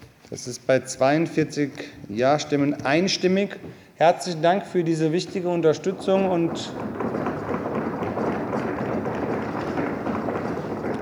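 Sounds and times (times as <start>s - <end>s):
speech: 0.3s - 7.1s
council members' hands knocking on wooden desks: 5.2s - 11.0s.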